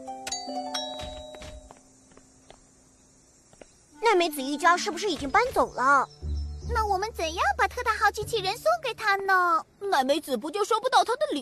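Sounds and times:
doorbell ringing with two chime tones: 0.3s - 1.7s
shuffling steps: 0.8s - 2.7s
speech: 4.1s - 11.4s.

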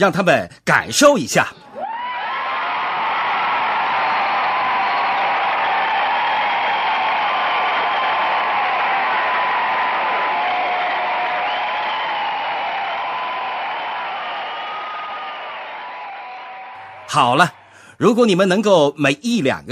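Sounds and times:
speech: 0.0s - 1.6s, 17.2s - 19.7s
audience applause: 1.8s - 17.5s.

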